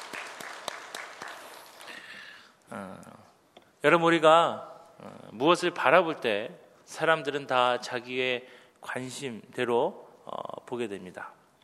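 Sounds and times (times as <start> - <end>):
audience applause: 0.0 - 2.1
speech: 2.7 - 11.4.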